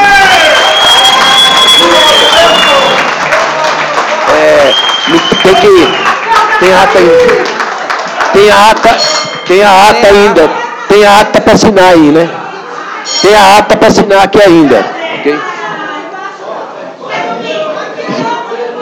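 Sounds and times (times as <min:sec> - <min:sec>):
scattered cheers: 0:00.0 - 0:08.7
audience applause: 0:00.0 - 0:09.0
speech: 0:06.6 - 0:07.6, 0:08.4 - 0:12.4, 0:13.0 - 0:15.5.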